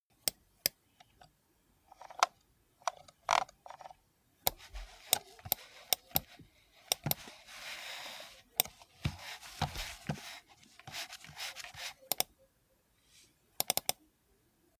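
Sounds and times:
computer mouse in use: 2.0 - 7.4, 8.6 - 12.3, 13.6 - 14.0.

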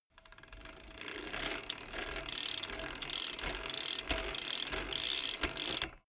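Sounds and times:
BMX bike pedaling and accelerating: 0.2 - 6.0.

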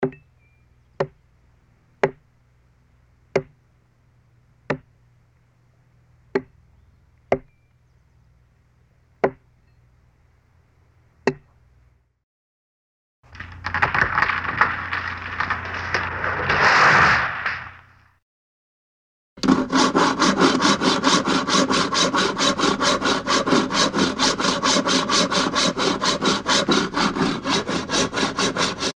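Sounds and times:
chopping a tree: 2.0 - 2.3, 3.3 - 3.6, 4.7 - 4.9, 6.3 - 6.6, 7.3 - 7.5, 9.2 - 9.5, 11.2 - 11.5, 13.3 - 17.8, 19.4 - 28.9.

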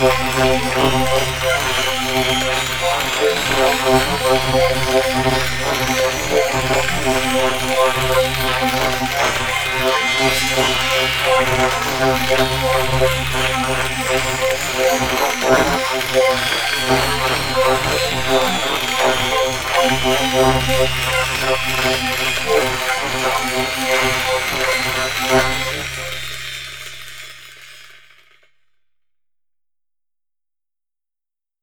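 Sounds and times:
crazy atmospheric didgeridoo: 0.0 - 27.8.

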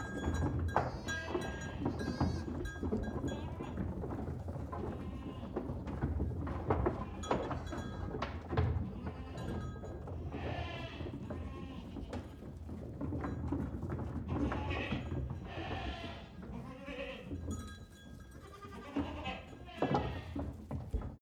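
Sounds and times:
moving goat herd trampling and rustling: 0.0 - 21.2
goats bleating: 0.8 - 3.8, 10.3 - 12.2, 14.3 - 17.4, 18.4 - 20.4.

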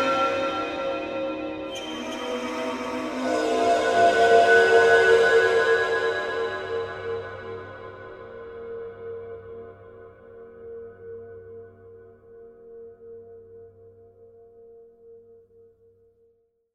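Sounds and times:
cymbals: 0.0 - 8.6.

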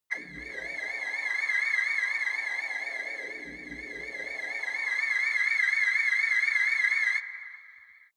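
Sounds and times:
ufo orbiting: 0.1 - 6.5.

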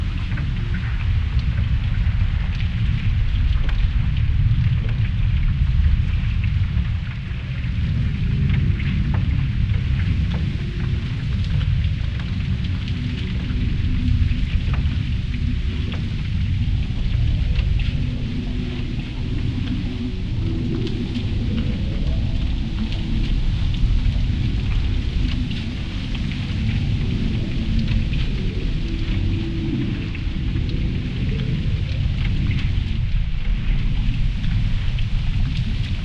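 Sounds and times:
grumbling water: 0.0 - 36.0.

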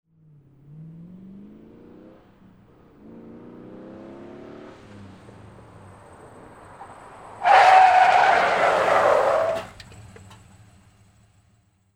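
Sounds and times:
Pontiac braking: 0.3 - 11.7.

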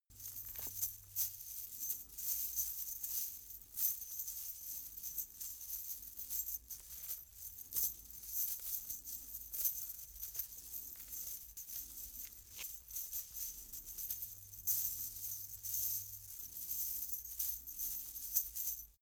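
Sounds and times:
chain mail being handled: 0.1 - 19.0.

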